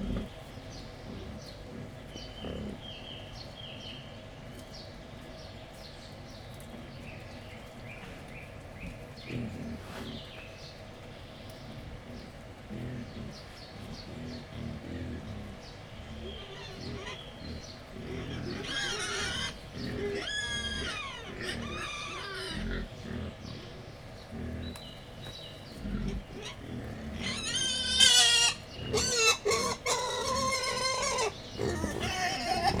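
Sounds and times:
wild boar grunting: 0.0 - 3.1, 8.8 - 10.6, 11.5 - 32.7
high bird chirps: 0.0 - 32.7.

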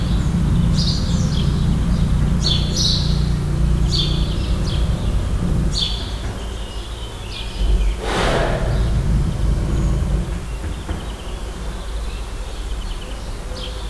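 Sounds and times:
quiet snoring of a Bengal tiger in a zoo: 0.0 - 6.6, 7.6 - 10.8
loud birds in a zoo: 0.0 - 13.8.

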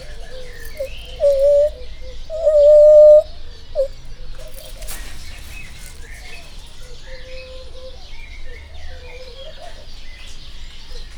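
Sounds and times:
white-handed gibbon communication calls at a zoo: 1.2 - 3.9.

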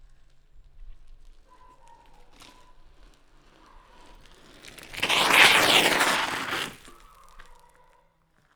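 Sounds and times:
bicycle back-pedalling there and back: 2.0 - 7.2.

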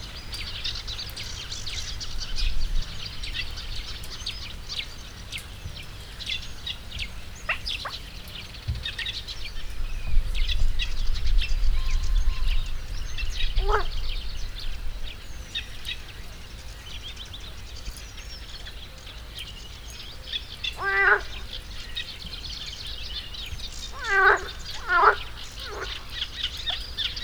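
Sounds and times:
birds at the Hortobágy fish ponds: 0.0 - 27.2
gentle breeze at the Hortobágy fish ponds: 0.0 - 27.2
pond frog at the Hortobágy fish ponds: 13.6 - 14.0, 20.8 - 21.7, 23.9 - 26.9.

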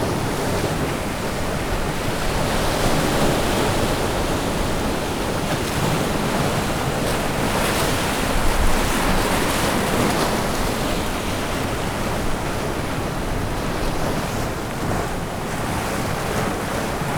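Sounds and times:
ocean closer to the harbour in Orzola: 0.0 - 17.1.

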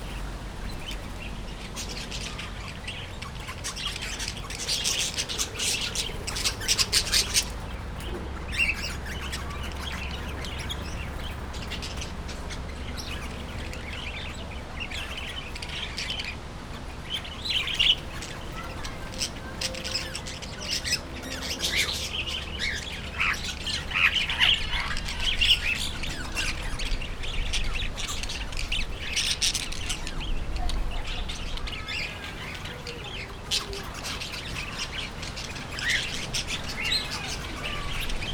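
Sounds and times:
parrots in a zoo: 0.0 - 38.3.

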